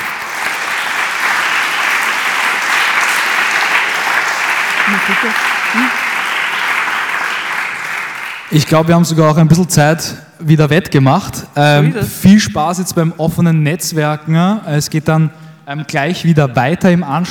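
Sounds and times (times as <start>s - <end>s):
audience applause: 0.0s - 8.7s
speech: 5.1s - 6.0s, 8.5s - 17.2s.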